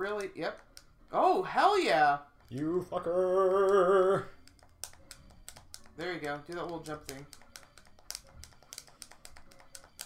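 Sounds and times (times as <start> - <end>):
game controller buttons slammed during play: 0.0 - 1.1, 3.6 - 10.0
speech: 0.0 - 4.4, 6.0 - 7.4.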